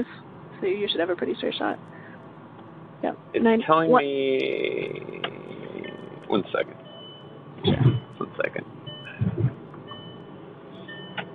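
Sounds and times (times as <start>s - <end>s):
speech: 0.0s - 2.0s, 3.0s - 5.2s, 6.3s - 6.8s, 7.6s - 8.8s
car seatbelt warning beeping: 5.2s - 11.3s.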